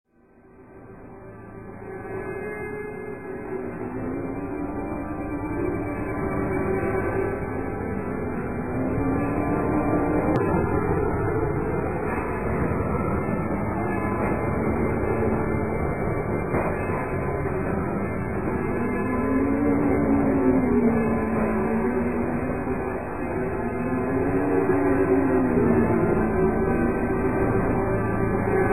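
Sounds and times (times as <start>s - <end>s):
short ethereal Halloween music: 0.2s - 28.7s.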